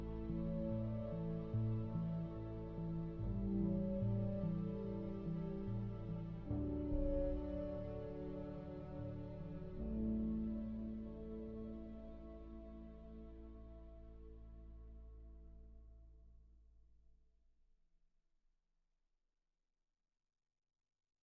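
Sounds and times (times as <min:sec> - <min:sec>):
piano: 0:00.0 - 0:16.2.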